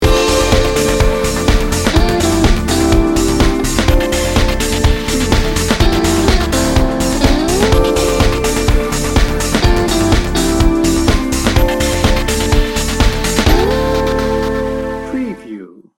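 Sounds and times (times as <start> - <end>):
trance dance music: 0.0 - 15.6.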